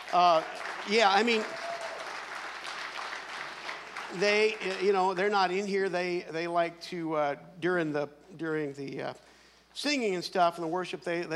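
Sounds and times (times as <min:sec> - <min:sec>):
audience applause: 0:00.0 - 0:05.2
speech: 0:00.1 - 0:01.6, 0:04.1 - 0:11.3.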